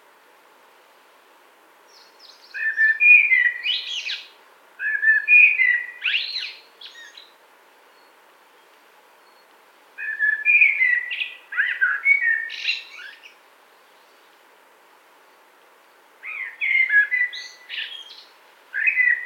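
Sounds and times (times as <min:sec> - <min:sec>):
common blackbird song: 0:01.9 - 0:14.4, 0:16.2 - 0:19.2.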